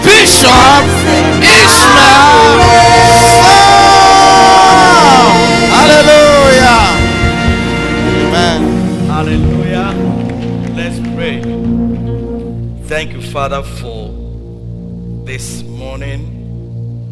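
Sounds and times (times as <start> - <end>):
church congregation shouting and cheering to welcome a bishop: 0.0 - 11.6.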